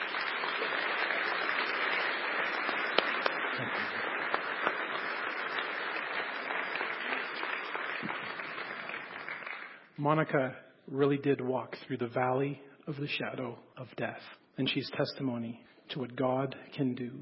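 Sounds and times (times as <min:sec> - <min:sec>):
audience applause: 0:00.0 - 0:09.9
speech: 0:03.6 - 0:04.0, 0:10.0 - 0:17.2.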